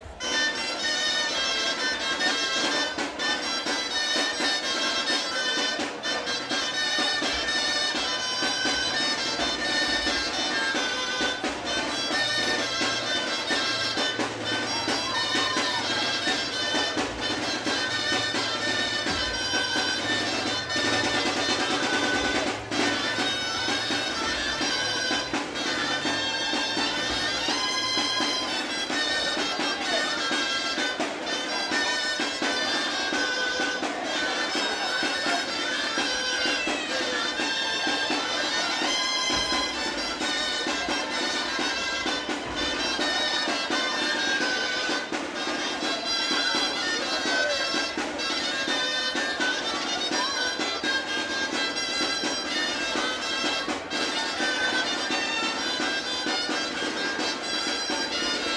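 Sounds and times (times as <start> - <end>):
Basque gaiteros playing a fandango: 0.0 - 58.5.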